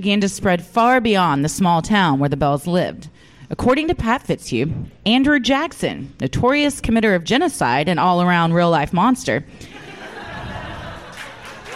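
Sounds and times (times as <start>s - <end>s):
speech: 0.0s - 9.8s
laughter: 9.6s - 11.7s
applause: 11.0s - 11.7s.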